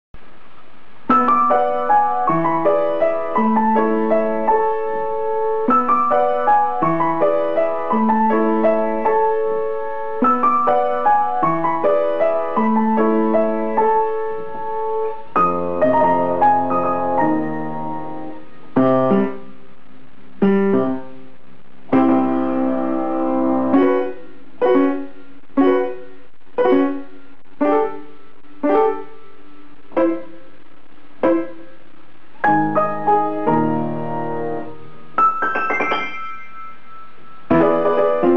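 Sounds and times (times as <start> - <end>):
piano: 0.2 - 38.3.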